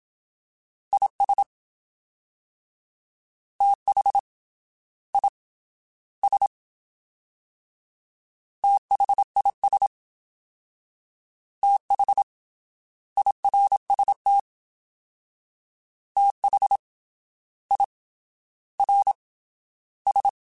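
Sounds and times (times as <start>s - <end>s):
fast CW Morse code groups: 0.9s - 1.5s, 3.6s - 4.2s, 6.2s - 6.5s, 8.6s - 9.9s, 11.6s - 12.3s, 13.2s - 14.4s, 16.2s - 16.8s, 18.8s - 19.2s, 20.1s - 20.4s.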